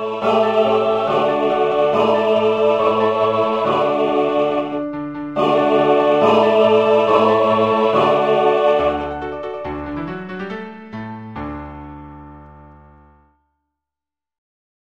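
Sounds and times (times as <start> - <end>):
full choir singing: 0.0 - 10.1.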